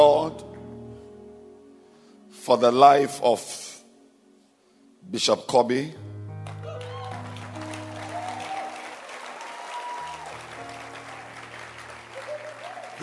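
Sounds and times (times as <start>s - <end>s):
speech: 2.5s - 3.6s, 5.1s - 6.1s
audience applause: 6.5s - 13.0s.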